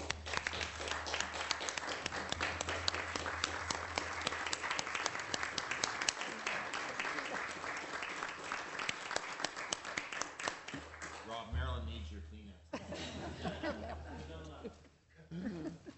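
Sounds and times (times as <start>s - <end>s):
round of applause: 0.0s - 11.5s
laughter: 12.8s - 15.9s.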